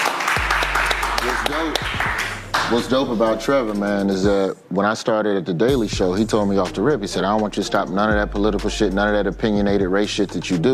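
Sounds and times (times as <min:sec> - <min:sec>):
crowd clapping: 0:00.0 - 0:03.3
speech: 0:01.5 - 0:10.7.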